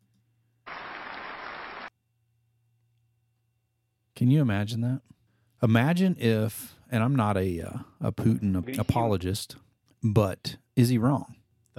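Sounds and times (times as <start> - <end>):
resounding audience applause: 0.7 - 1.9
speech: 4.2 - 11.7.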